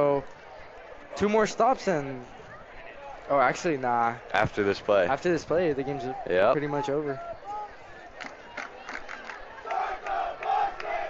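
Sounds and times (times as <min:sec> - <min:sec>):
speech: 0:01.2 - 0:02.4, 0:03.3 - 0:07.4
student section crowd chanting: 0:09.4 - 0:11.0.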